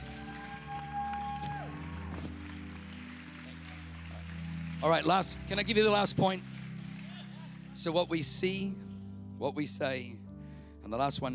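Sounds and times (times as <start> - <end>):
audience clapping: 0.0 - 8.6
speech: 4.8 - 6.5, 7.8 - 8.8, 9.4 - 10.2, 10.8 - 11.3.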